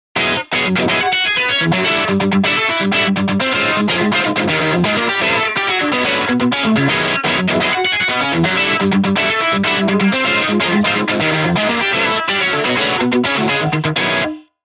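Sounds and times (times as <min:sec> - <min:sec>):
guitar: 0:00.2 - 0:14.6.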